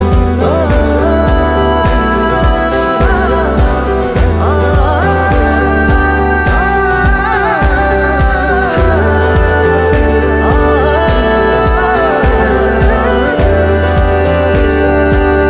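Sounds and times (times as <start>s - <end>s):
person humming: 0.0s - 15.4s.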